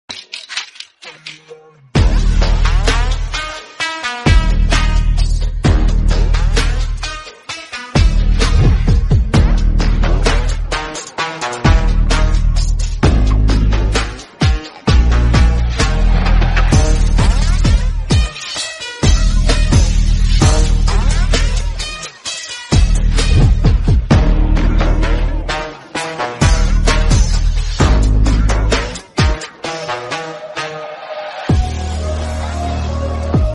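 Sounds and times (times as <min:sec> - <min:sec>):
Korean instrumental background music: 0:00.1 - 0:33.5.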